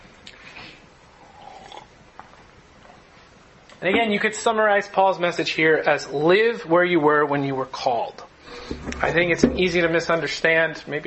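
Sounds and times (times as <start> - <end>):
person sipping water: 1.2 - 1.9
speech: 3.8 - 11.0.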